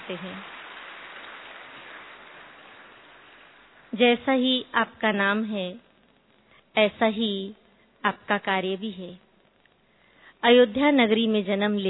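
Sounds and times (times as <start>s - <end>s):
audience applause: 0.0s - 3.9s
speech: 0.1s - 0.6s, 3.9s - 5.9s, 6.8s - 9.2s, 10.4s - 11.8s.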